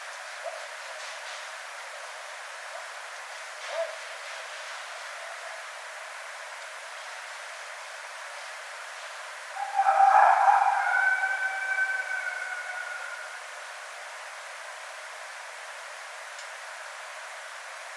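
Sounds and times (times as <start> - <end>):
red fox calling: 9.5 - 13.7.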